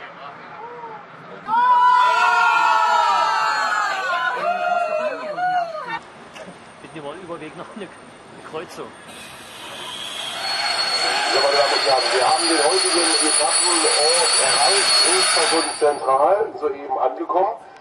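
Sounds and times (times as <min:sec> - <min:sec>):
football fans cheering on a train: 0:00.6 - 0:06.0, 0:10.2 - 0:16.0
speech: 0:07.5 - 0:09.5, 0:11.3 - 0:17.8.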